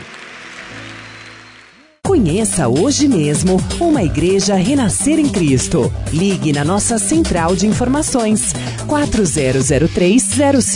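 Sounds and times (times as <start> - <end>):
crowd clapping: 0.0 - 2.0
speech: 2.1 - 10.7.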